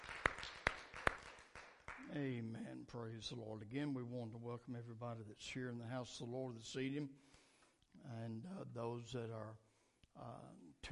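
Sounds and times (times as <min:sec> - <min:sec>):
audience hand claps in a steady rhythm: 0:00.0 - 0:02.2
speech: 0:02.1 - 0:07.4, 0:08.0 - 0:10.9.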